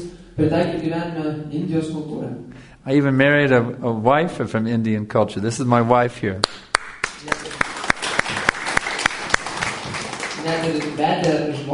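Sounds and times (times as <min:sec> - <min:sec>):
speech: 0:00.0 - 0:07.5, 0:10.5 - 0:11.7
audience applause: 0:06.7 - 0:11.6.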